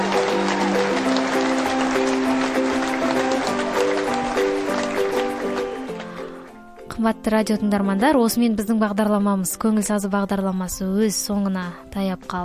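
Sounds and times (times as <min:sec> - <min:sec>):
applause for a radio quiz winner: 0:00.0 - 0:06.7
sustained tonal music: 0:00.0 - 0:10.6
speech: 0:07.0 - 0:12.4.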